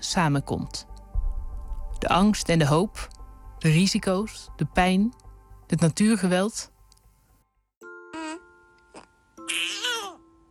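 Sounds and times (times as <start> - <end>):
speech: 0.0 - 0.9, 2.0 - 6.7, 9.5 - 9.9
baby girl a few weeks old babbling in her crib: 8.1 - 10.2.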